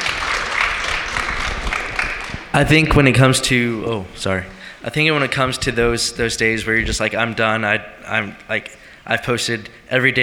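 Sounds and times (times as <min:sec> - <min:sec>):
audience clapping: 0:00.0 - 0:03.0
speech: 0:02.6 - 0:10.2.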